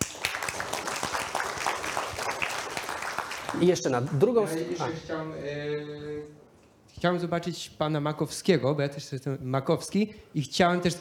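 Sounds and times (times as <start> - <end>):
crowd applauding: 0.0 - 3.8
speech: 3.5 - 6.4, 7.0 - 10.9.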